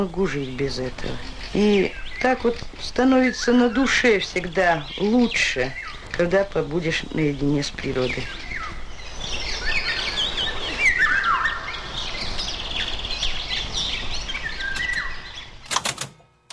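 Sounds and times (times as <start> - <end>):
speech: 0.0 - 8.4
Eurasian golden oriole singing fluting whistled phrases: 0.0 - 15.7
sharp clicks: 14.7 - 16.5.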